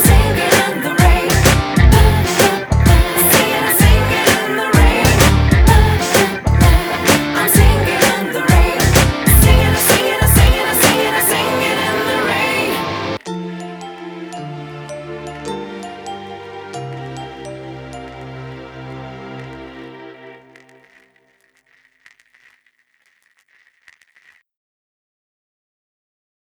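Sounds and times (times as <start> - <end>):
instrumental karaoke music: 0.0 - 20.6.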